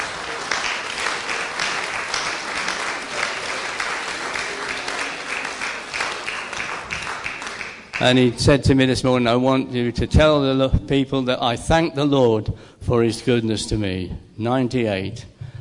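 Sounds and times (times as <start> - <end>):
round of applause from a crowd: 0.0 - 8.3
speech: 8.0 - 15.3.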